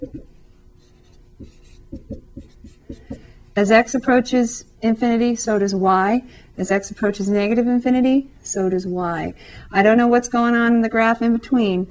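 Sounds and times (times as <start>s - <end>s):
drawing dotted lines on a graph: 0.0s - 0.3s, 1.0s - 3.3s
speech: 3.6s - 11.9s.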